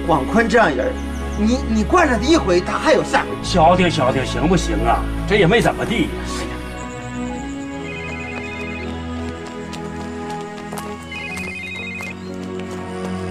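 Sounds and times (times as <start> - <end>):
speech: 0.1 - 6.5
phone ringing unanswered: 7.8 - 8.9.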